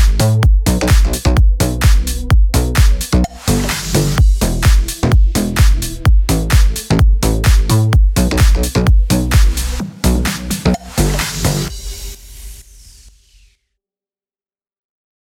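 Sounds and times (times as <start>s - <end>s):
house music bed slap in E minor: 0.0s - 12.8s.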